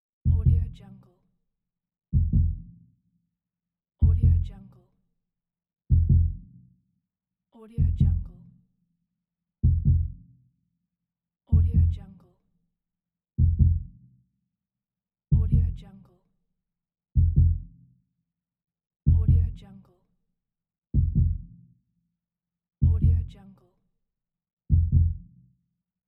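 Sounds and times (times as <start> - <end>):
heartbeat: 0.3 - 0.7, 2.2 - 2.7, 4.0 - 4.5, 5.9 - 6.4, 7.8 - 8.3, 9.6 - 10.2, 11.6 - 12.0, 13.4 - 13.9, 15.4 - 15.8, 17.2 - 17.7, 19.1 - 19.5, 21.0 - 21.5, 22.8 - 23.2, 24.7 - 25.2.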